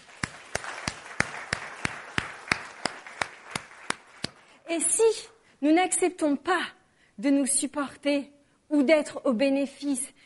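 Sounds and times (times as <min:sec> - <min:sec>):
audience clapping in rhythm: 0:00.0 - 0:04.7
speech: 0:04.7 - 0:10.2.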